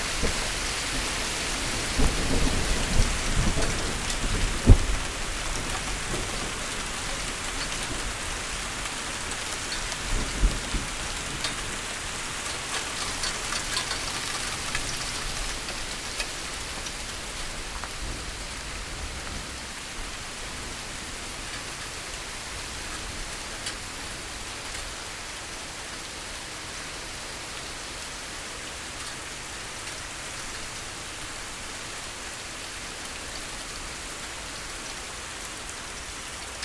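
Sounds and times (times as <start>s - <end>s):
hail: 0.0s - 23.9s
rain: 0.0s - 36.6s
thunder: 0.2s - 6.6s.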